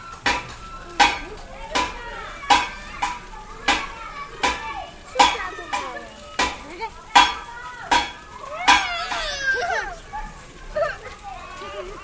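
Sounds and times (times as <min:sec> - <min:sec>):
metalworking: 0:00.0 - 0:09.3.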